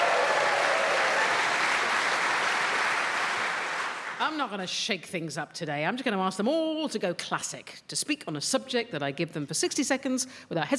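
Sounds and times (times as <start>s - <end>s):
studio audience applauding: 0.0s - 4.2s
speech: 4.3s - 10.7s.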